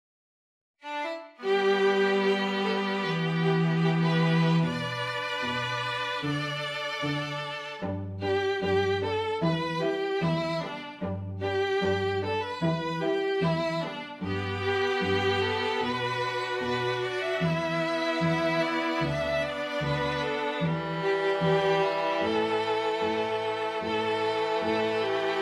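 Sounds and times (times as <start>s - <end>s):
string quartet: 0.8s - 25.3s.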